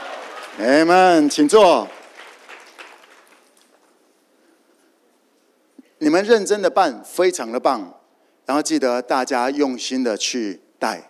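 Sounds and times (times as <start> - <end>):
audience applause: 0.0 - 3.9
speech: 0.6 - 2.0, 6.1 - 11.0.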